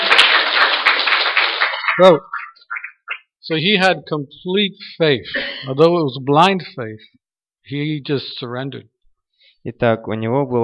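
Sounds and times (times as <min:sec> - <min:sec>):
audience clapping: 0:00.0 - 0:03.2
speech: 0:02.0 - 0:02.3, 0:03.5 - 0:08.9, 0:09.6 - 0:10.6.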